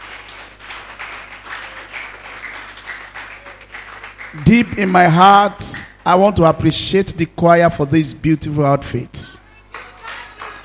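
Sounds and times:
crowd clapping: 0:00.0 - 0:06.3, 0:09.6 - 0:10.6
speech: 0:04.3 - 0:09.2.

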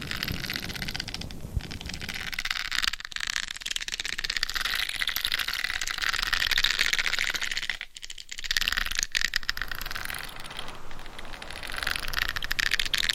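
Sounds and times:
soft low rumble: 0:00.0 - 0:02.4, 0:09.3 - 0:13.1
intense scratching on a binaural head mic: 0:00.0 - 0:13.1.

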